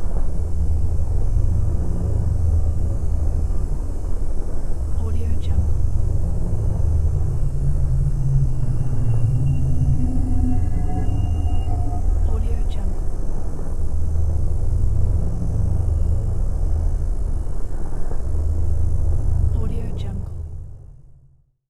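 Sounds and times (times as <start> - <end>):
drone ambience: 0.0 - 21.1.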